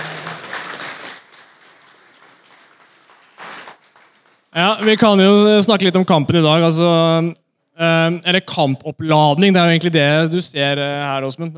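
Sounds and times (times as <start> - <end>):
audience applause: 0.0 - 5.2
speech: 4.6 - 11.5.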